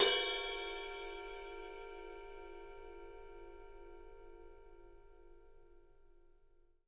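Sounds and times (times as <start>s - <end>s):
studio ride cymbal: 0.0s - 2.6s.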